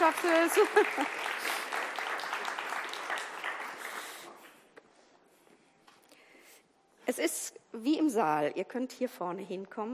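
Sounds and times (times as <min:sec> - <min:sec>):
audience applause: 0:00.0 - 0:04.4
speech: 0:00.1 - 0:01.4, 0:07.1 - 0:09.9.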